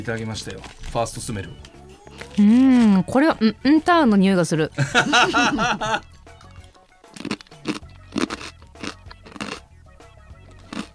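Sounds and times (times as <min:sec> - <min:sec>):
speech: 0:00.0 - 0:06.1
laughter: 0:04.8 - 0:06.1
crunching and chewing a large hard-fried rice cracker: 0:06.6 - 0:09.7, 0:10.4 - 0:10.9.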